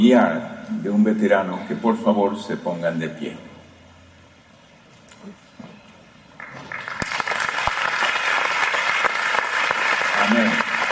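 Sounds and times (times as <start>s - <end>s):
speech: 0.0s - 3.5s, 5.2s - 5.4s
audience applause: 6.4s - 10.8s.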